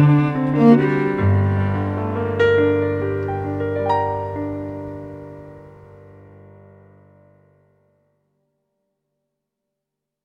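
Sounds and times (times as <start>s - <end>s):
waltz music: 0.0s - 6.1s.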